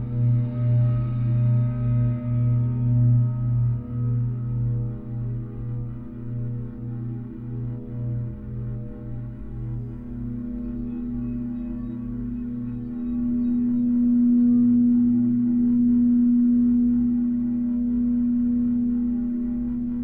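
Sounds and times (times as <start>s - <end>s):
Tibetan singing bowls humming: 0.0s - 20.0s.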